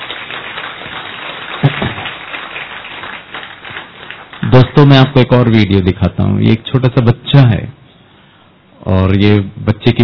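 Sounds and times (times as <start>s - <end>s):
sharp loud clap: 0.0s - 4.9s
crowd applauding: 0.0s - 5.1s
speech: 4.8s - 7.8s, 8.8s - 10.0s.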